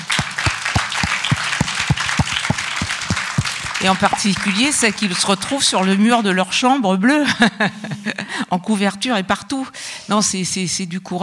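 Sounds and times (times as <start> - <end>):
audience applause: 0.0 - 6.0
speech: 3.8 - 11.2.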